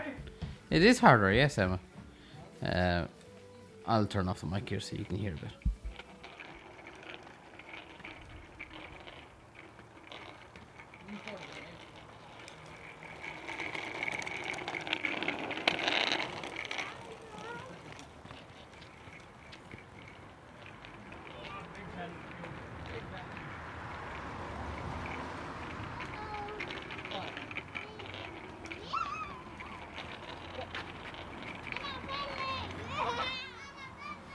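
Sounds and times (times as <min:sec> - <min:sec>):
rolling and scraping of bikes and skates: 0:00.0 - 0:34.3
steady low rumble of traffic: 0:00.0 - 0:34.3
speech: 0:00.7 - 0:01.9, 0:02.6 - 0:03.2, 0:03.9 - 0:05.7
children's voices and play sounds: 0:16.5 - 0:18.1, 0:25.8 - 0:30.1, 0:31.6 - 0:34.3.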